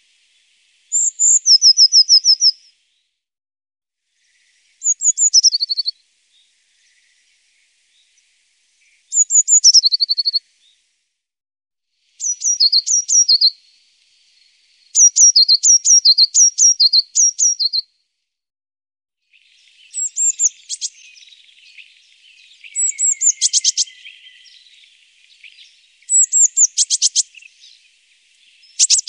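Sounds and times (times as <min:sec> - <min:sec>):
Eurasian blue tit calling with thin high quick notes: 0:00.9 - 0:02.7, 0:04.8 - 0:06.0, 0:09.1 - 0:10.4, 0:12.2 - 0:13.6, 0:15.0 - 0:17.8, 0:19.7 - 0:27.8, 0:28.6 - 0:29.0.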